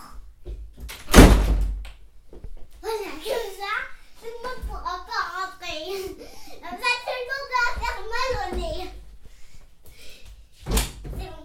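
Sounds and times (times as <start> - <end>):
door pushed shut: 0.9 - 1.8
faint shuffling: 2.2 - 11.4.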